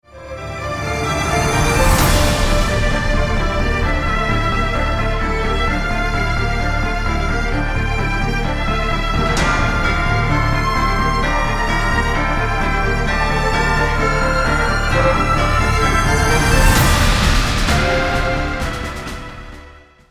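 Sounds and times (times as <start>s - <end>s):
strings: 0.0s - 20.0s.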